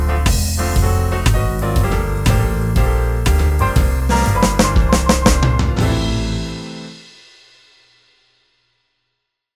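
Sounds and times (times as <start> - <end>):
laidback jazz piano trio playing: 0.0 - 7.0.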